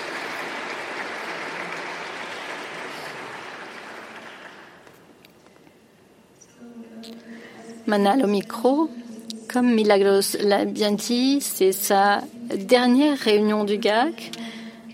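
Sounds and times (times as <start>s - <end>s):
audience applause: 0.0s - 5.0s
speech: 7.9s - 14.5s.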